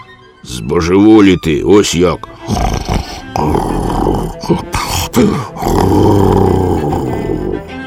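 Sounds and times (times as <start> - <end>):
speech: 0.5 - 6.8
loud menacing snoring: 2.3 - 7.7.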